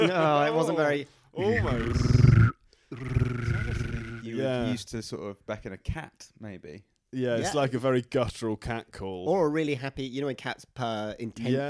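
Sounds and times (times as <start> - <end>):
speech: 0.0 - 3.5, 4.3 - 11.6
person imitating a laser beam machine gun: 1.4 - 4.3.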